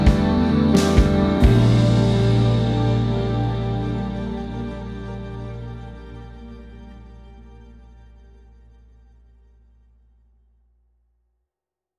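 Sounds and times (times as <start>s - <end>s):
bass drums: 0.0s - 5.9s
spacey dreamy slightly dark chill music: 0.0s - 8.8s.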